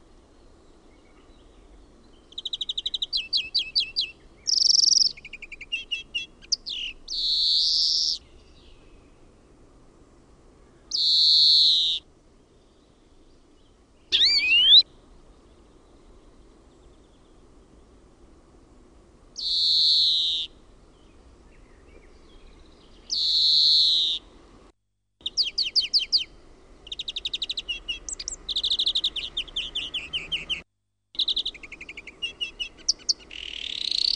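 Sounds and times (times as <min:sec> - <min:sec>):
European greenfinch singing: 0:01.0 - 0:09.0, 0:10.9 - 0:12.0, 0:14.1 - 0:14.9, 0:19.4 - 0:20.6, 0:21.6 - 0:24.3, 0:25.2 - 0:30.6, 0:31.2 - 0:34.1.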